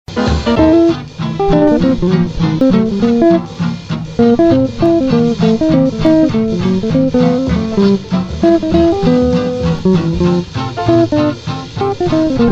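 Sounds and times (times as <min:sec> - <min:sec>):
blues music: 0:00.1 - 0:12.5.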